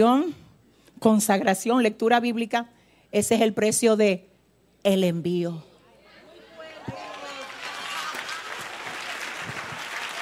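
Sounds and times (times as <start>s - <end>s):
speech: 0.0s - 0.4s, 1.0s - 5.7s
audience applause: 6.6s - 10.2s.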